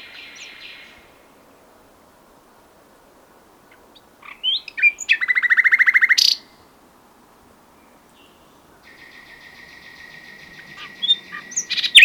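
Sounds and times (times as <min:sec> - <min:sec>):
common nightingale singing: 0:00.0 - 0:01.1, 0:03.7 - 0:06.6, 0:07.8 - 0:12.0.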